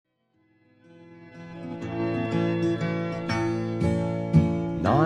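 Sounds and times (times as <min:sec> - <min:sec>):
waltz music: 0:01.4 - 0:04.9.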